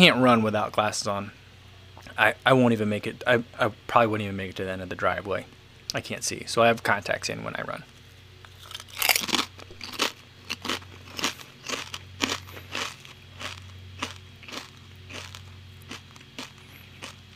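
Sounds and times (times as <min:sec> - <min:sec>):
speech: 0:00.0 - 0:01.4, 0:02.1 - 0:07.9
crunching kettle chips being chewed: 0:08.5 - 0:17.3.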